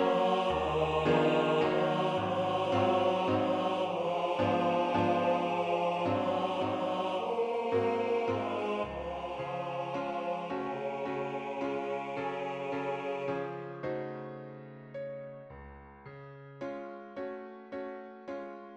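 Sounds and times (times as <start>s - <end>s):
tenor singing: 0.0s - 13.4s.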